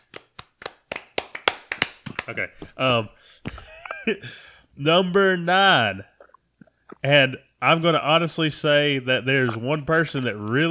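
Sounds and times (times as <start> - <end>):
hands clapping: 0.0 - 2.5
speech: 2.3 - 6.1, 7.0 - 10.6
laughter: 3.5 - 4.2.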